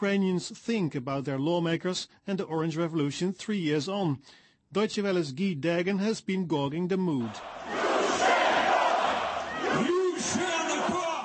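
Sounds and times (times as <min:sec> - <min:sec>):
speech: 0:00.0 - 0:07.8
large crowd of protesters chanting and roaring: 0:07.2 - 0:11.2.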